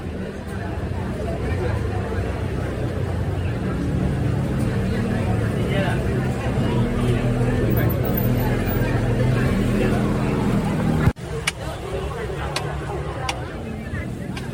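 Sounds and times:
crowd chatter: 0:00.0 - 0:14.5
street noise: 0:00.0 - 0:14.5
maltose-candy and mochi vendor's clacker clacking: 0:11.2 - 0:14.5.

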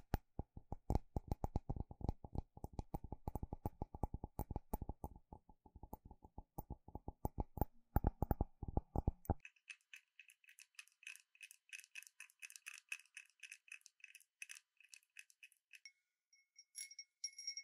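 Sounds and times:
wind bell cup and glass tapping: 0:00.0 - 0:05.2, 0:05.8 - 0:09.4
dull low ticks: 0:00.0 - 0:16.0.

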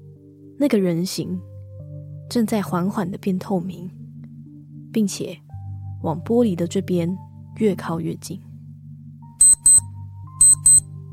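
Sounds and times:
speech: 0:00.6 - 0:01.5, 0:02.3 - 0:04.0, 0:04.9 - 0:05.4, 0:06.0 - 0:08.5
wristwatch alarm beeping: 0:09.4 - 0:10.8.

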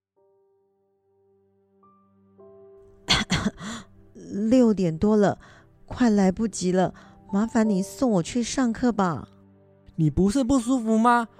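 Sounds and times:
person coughing: 0:03.1 - 0:03.9
speech: 0:03.4 - 0:09.3, 0:10.0 - 0:11.3.

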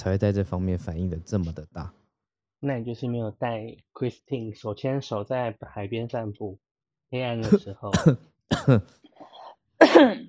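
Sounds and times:
speech: 0:00.0 - 0:02.0, 0:02.6 - 0:09.1, 0:09.8 - 0:10.2
harsh forceful coughs: 0:07.4 - 0:08.9, 0:09.8 - 0:10.2.

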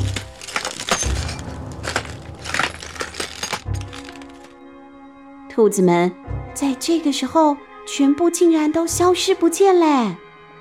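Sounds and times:
crackling lightning effect: 0:00.0 - 0:04.5
glassy breaking clinks of shattering phones: 0:00.0 - 0:04.5
speech: 0:05.6 - 0:10.2.

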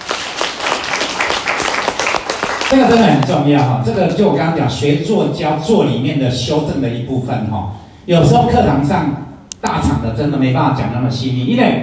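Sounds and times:
audience applause: 0:00.0 - 0:03.2
speech: 0:02.7 - 0:11.8.

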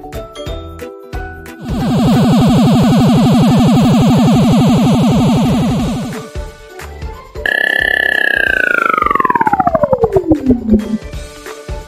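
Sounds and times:
synthetic UFO sound effect pulsing electronic hum: 0:01.6 - 0:06.4, 0:07.5 - 0:11.2
synthetic UFO bright whistling tone sweeping downward: 0:07.5 - 0:11.1.

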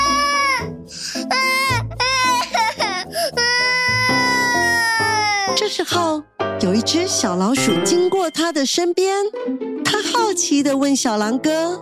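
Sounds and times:
voice imitating loud wailing crying: 0:01.2 - 0:05.4
speech: 0:05.7 - 0:11.7.

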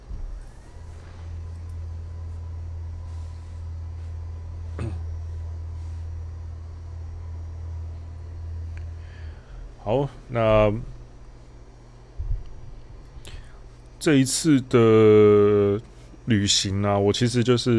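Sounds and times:
motorized standing desk being raised: 0:00.0 - 0:17.7
speech: 0:09.9 - 0:11.0, 0:14.0 - 0:17.7.

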